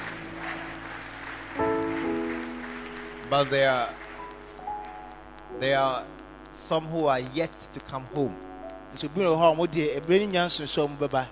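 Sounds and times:
audience clapping: 0.0s - 5.7s
sustained keyboard chord: 0.0s - 11.3s
speech: 3.3s - 4.0s, 5.5s - 11.3s.

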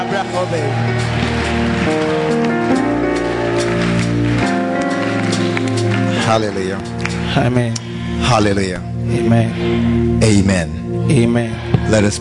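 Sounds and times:
audience clapping: 0.0s - 7.8s
speech: 0.1s - 1.2s, 6.3s - 12.2s.

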